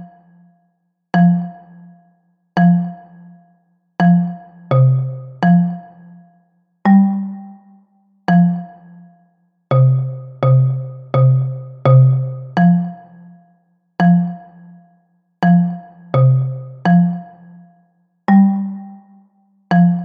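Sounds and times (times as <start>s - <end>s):
bass xylophone: 1.2s - 2.0s, 2.6s - 3.4s, 4.0s - 6.1s, 6.9s - 7.5s, 9.7s - 13.4s, 14.0s - 14.8s, 15.4s - 17.6s, 18.3s - 19.0s, 19.7s - 20.0s.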